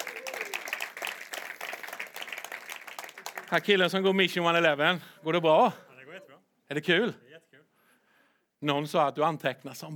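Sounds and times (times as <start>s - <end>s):
audience applause: 0.0s - 3.9s
speech: 3.5s - 5.8s, 6.7s - 7.2s, 8.6s - 9.9s.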